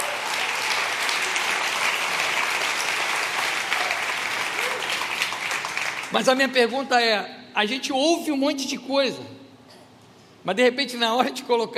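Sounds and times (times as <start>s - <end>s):
audience applauding: 0.0s - 6.3s
speech: 6.1s - 9.4s, 10.4s - 11.7s.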